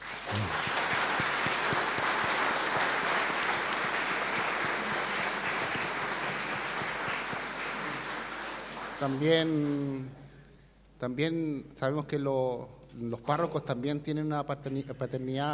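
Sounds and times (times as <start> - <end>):
audience applauding: 0.0 - 9.9
speech: 9.0 - 10.2, 11.0 - 15.5.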